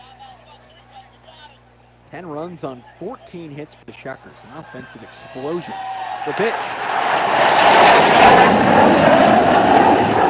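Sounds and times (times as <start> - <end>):
speech: 2.1 - 9.3
military jet flyover above ballpark: 4.1 - 10.2.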